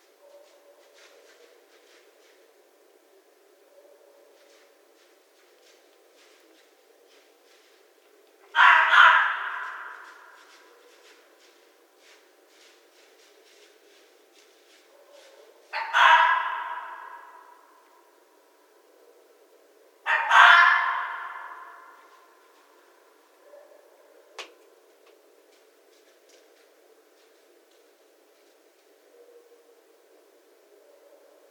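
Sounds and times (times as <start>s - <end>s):
red fox screaming: 8.5s - 10.4s, 15.7s - 17.6s, 20.1s - 22.1s.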